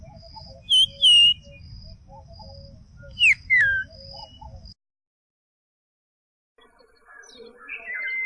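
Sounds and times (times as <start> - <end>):
common iora song: 0.0 - 4.7, 7.2 - 8.2.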